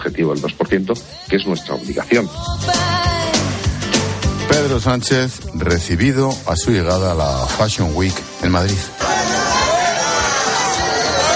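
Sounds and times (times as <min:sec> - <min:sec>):
speech: 0:00.1 - 0:03.2, 0:04.5 - 0:09.1
crowd shouting: 0:08.9 - 0:11.3.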